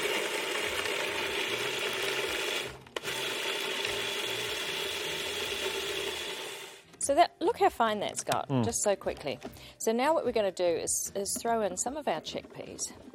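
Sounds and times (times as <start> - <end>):
food processor chopping roughly cut carrots: 0.0 - 6.8
speech: 7.1 - 13.1.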